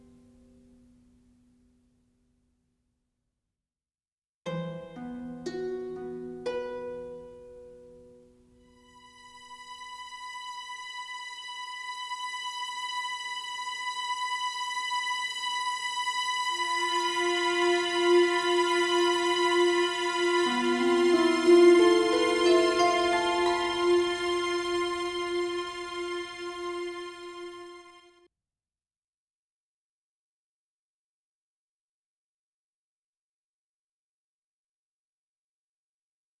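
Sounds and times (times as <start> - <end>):
harp: 4.5 - 28.0.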